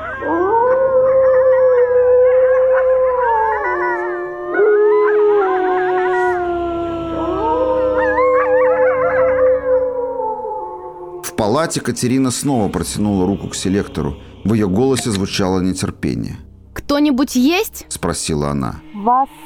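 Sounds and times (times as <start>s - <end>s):
dogs howling in chorus: 0.0s - 15.2s
speech: 11.6s - 19.4s.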